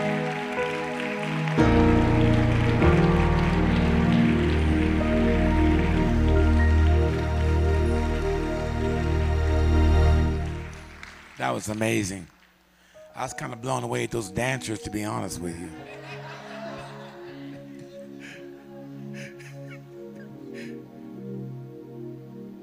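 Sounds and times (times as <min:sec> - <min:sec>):
audience applause: 0:00.0 - 0:12.5, 0:15.9 - 0:18.5
speech: 0:11.6 - 0:12.4, 0:13.2 - 0:16.2
laughter: 0:15.7 - 0:20.8.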